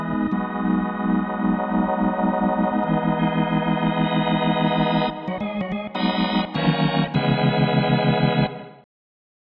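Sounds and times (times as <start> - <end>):
B3 note on Yamaha Tyros3 keyboard: 0.0 - 8.7.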